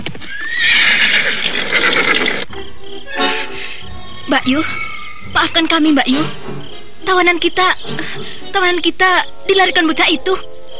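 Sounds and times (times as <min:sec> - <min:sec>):
horse hooves galloping: 0:00.0 - 0:02.6
speech: 0:04.4 - 0:10.5.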